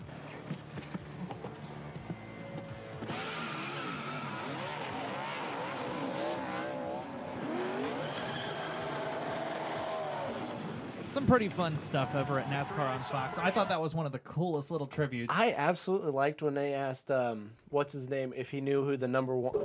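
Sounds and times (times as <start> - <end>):
car engine roaring as it is driven in: 0.0 - 13.7
tires squealing: 0.0 - 13.7
speech: 11.2 - 19.6.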